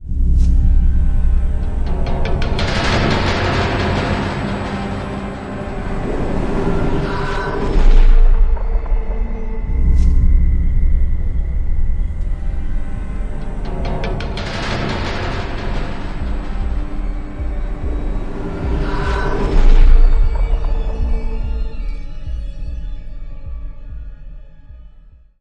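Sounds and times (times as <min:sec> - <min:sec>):
cave ambience: 0:00.0 - 0:22.9.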